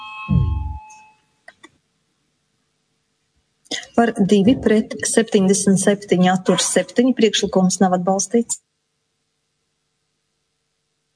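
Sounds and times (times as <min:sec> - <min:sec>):
parliament voting bell: 0:00.0 - 0:01.4
steady high hum: 0:00.3 - 0:11.1
speech: 0:04.0 - 0:08.6.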